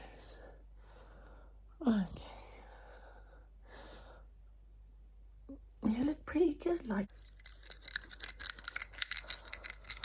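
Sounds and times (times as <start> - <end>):
speech: 1.8 - 2.3, 6.3 - 7.3
ASMR biting mouth sounds: 7.2 - 10.0.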